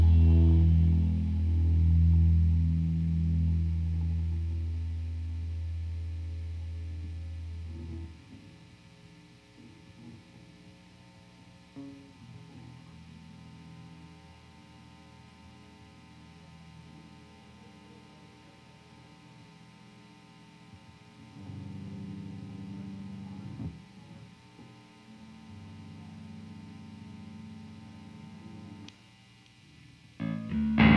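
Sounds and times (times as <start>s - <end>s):
bass guitar through amp recorded with M160 microphone: 0.0s - 8.6s, 30.2s - 30.9s.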